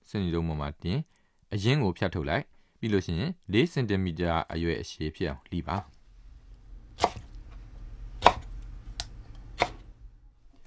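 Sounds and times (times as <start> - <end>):
speech: 0.1 - 6.0
knife chopping food into pieces: 6.8 - 10.6.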